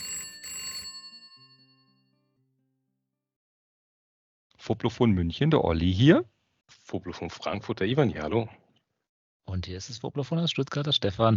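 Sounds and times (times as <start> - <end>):
telephone bell ringing: 0.0 - 2.2
speech: 4.6 - 8.6, 9.5 - 11.3.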